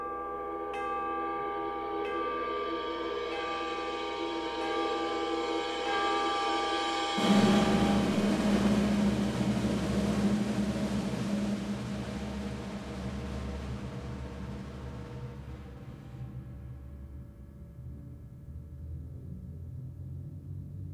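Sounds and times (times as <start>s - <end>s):
percussion ensemble: 0.1s - 16.3s.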